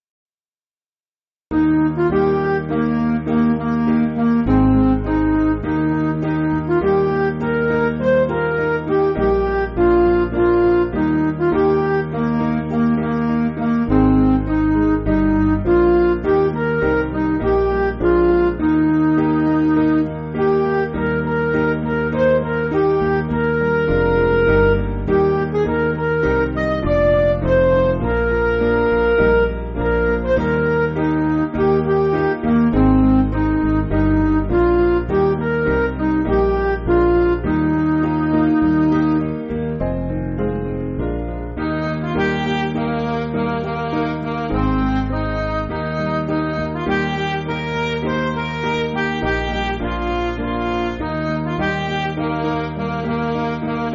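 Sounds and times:
MIDI music: 0:01.5 - 0:53.9.

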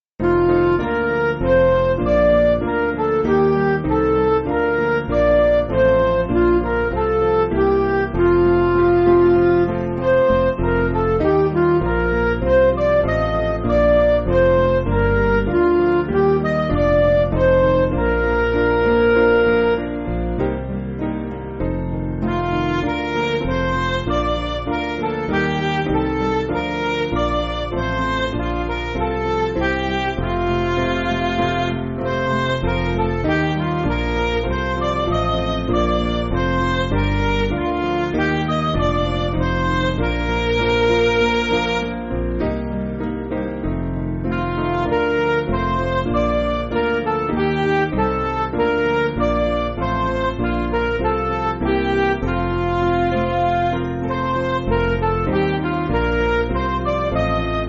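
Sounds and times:
MIDI music: 0:00.2 - 0:57.6.

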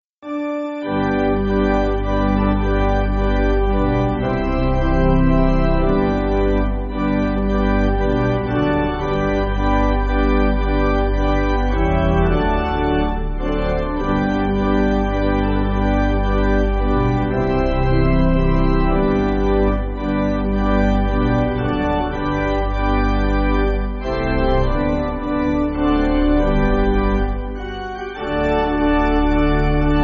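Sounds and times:
pipe organ backing for churches: 0:00.2 - 0:30.0.

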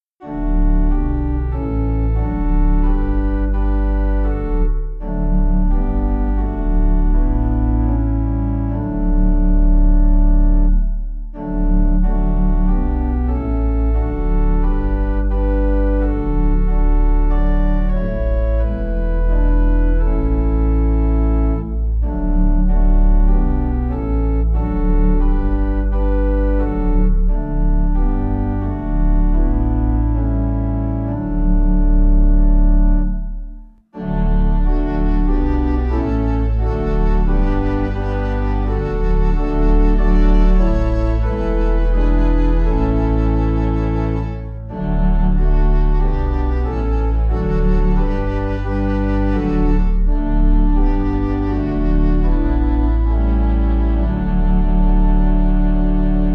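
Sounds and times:
pipe organ: 0:00.0 - 0:56.3.

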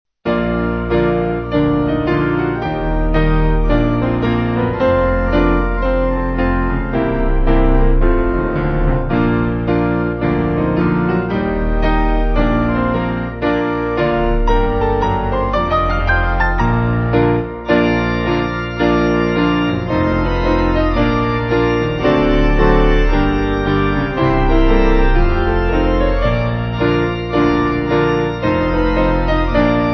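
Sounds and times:
piano: 0:00.2 - 0:29.9
organ: 0:00.3 - 0:29.9.

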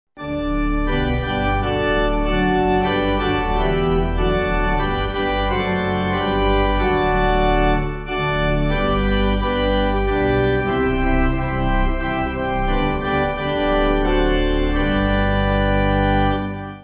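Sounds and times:
pipe organ hymn backing: 0:00.2 - 0:16.8.

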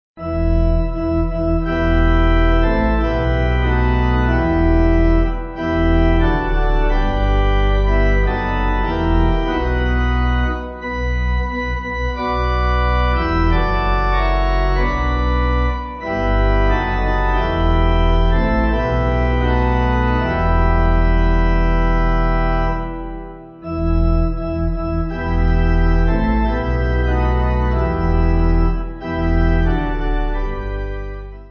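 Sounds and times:
pipe organ hymn backing: 0:00.2 - 0:31.5.

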